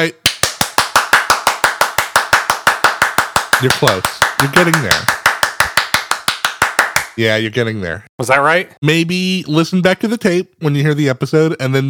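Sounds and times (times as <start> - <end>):
speech: 0.0 - 0.2, 3.6 - 5.2, 7.2 - 11.8
rhythmic hand clapping: 0.2 - 7.2.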